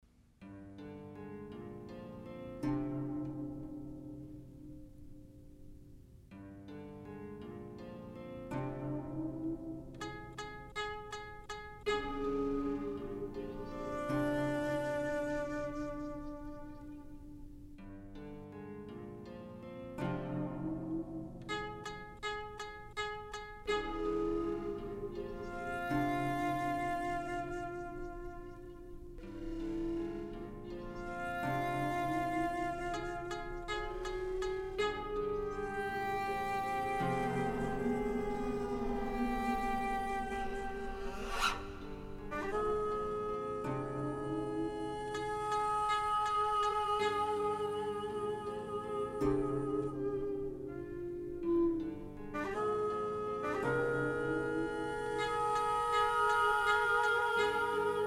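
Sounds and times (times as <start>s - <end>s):
koto: 0.0s - 58.0s
shakuhachi: 1.4s - 5.9s, 7.4s - 58.0s.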